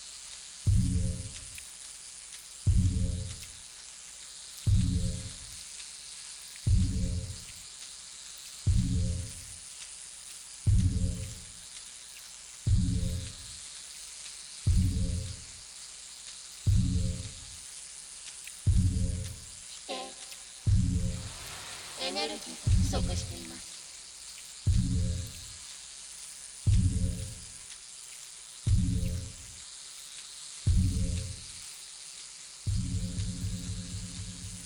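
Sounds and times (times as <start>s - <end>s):
retro vibrator buzzing: 0.7s - 1.5s, 2.7s - 3.4s, 4.7s - 5.4s, 6.7s - 7.5s, 8.7s - 9.5s, 10.7s - 11.5s, 12.7s - 13.5s, 14.7s - 15.5s, 16.7s - 17.4s, 18.7s - 21.3s, 24.7s - 25.5s, 26.7s - 27.5s, 28.7s - 29.5s, 30.7s - 31.6s, 32.7s - 34.6s.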